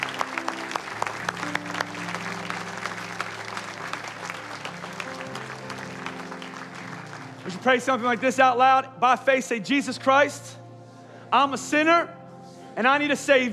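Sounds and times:
audience clapping: 0.0s - 8.4s
low sustained musical tone: 0.0s - 13.5s
speech: 7.5s - 10.6s, 11.3s - 12.2s, 12.8s - 13.5s.

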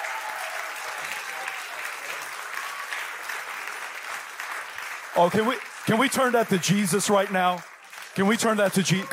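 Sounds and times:
audience applause welcoming speaker: 0.0s - 9.1s
speech: 5.2s - 9.1s.

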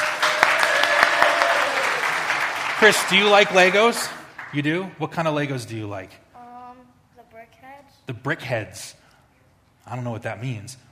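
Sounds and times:
crowd clapping: 0.0s - 5.0s
speech: 2.8s - 6.2s, 8.1s - 9.0s, 9.8s - 10.9s.

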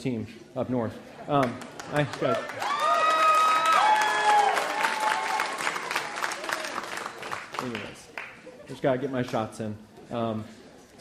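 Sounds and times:
speech: 0.0s - 2.7s, 7.6s - 8.1s, 8.7s - 10.9s
audience clapping: 1.3s - 8.5s
audience cheering: 2.0s - 7.8s.

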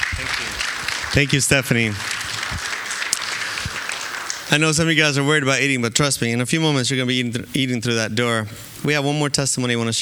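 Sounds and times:
crowd applause: 0.0s - 4.8s
speech: 0.2s - 2.2s, 4.5s - 10.0s.

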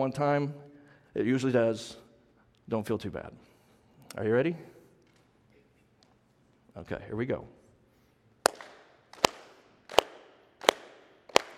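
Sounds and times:
speech: 0.0s - 0.6s, 1.2s - 2.0s, 2.7s - 3.5s, 4.1s - 4.7s, 6.8s - 7.6s
audience clapping in unison: 8.4s - 11.5s.

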